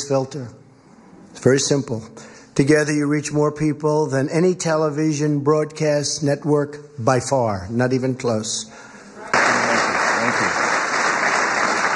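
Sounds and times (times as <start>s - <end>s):
speech: 0.1s - 0.6s, 1.4s - 8.9s
cheering: 9.3s - 11.9s
crowd applauding: 9.3s - 11.9s.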